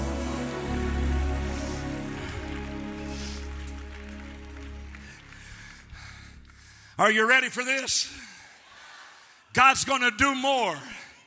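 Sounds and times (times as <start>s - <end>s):
audience clapping hands: 0.0s - 6.8s
speech: 7.0s - 8.3s, 9.6s - 11.0s.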